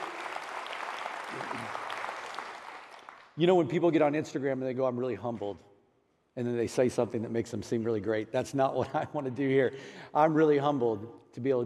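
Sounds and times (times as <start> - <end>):
audience applause: 0.0 - 3.4
speech: 3.4 - 5.7, 6.4 - 11.6.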